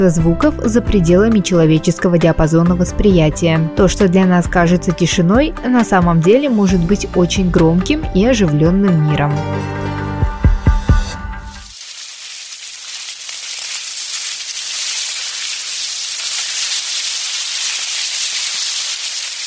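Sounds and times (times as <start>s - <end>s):
speech: 0.0s - 10.0s
ants rustling in an anthill: 11.6s - 19.4s.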